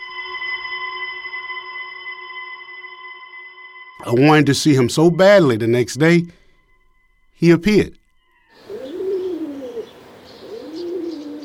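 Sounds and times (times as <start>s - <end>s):
speech: 4.0s - 6.4s, 7.4s - 8.0s
faint outdoor hiss: 4.0s - 11.4s
pigeons cooing: 8.5s - 11.4s.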